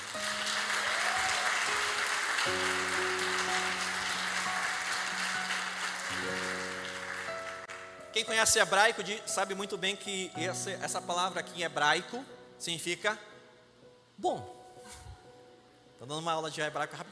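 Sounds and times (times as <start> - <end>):
big round of applause: 0.0 - 8.1
speech: 8.2 - 13.3, 14.2 - 15.0, 16.0 - 17.1.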